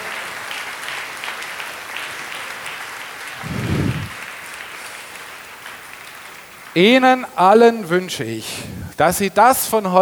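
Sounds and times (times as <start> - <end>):
crowd clapping: 0.0 - 7.5
low rumble: 3.4 - 4.1
speech: 6.8 - 10.0.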